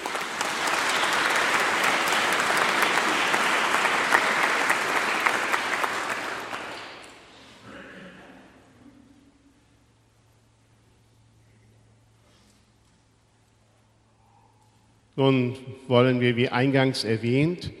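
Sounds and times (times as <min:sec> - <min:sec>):
audience applause: 0:00.0 - 0:07.5
speech: 0:15.2 - 0:17.7.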